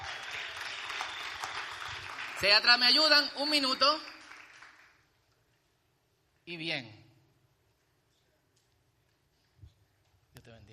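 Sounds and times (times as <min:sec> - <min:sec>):
audience applause: 0:00.0 - 0:05.0
speech: 0:02.4 - 0:04.1, 0:06.5 - 0:07.0.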